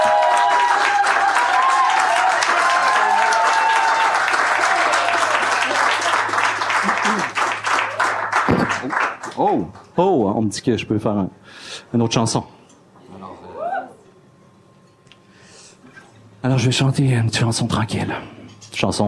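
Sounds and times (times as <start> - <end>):
cheers and whistles: 0.0 - 6.0
festival crowd applause: 0.0 - 9.6
speech: 9.5 - 12.6, 16.5 - 19.0.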